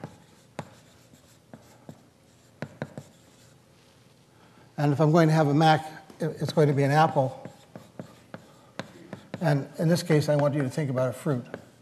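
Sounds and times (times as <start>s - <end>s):
word being written on a board: 0.0s - 3.6s, 6.6s - 11.8s
speech: 4.8s - 7.4s, 9.4s - 11.6s.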